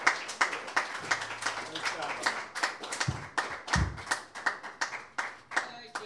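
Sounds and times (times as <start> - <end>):
crowd clapping: 0.0 - 6.0
low thumps: 3.0 - 4.1.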